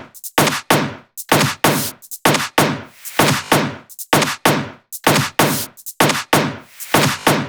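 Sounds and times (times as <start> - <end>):
drum loops: 0.0 - 7.4.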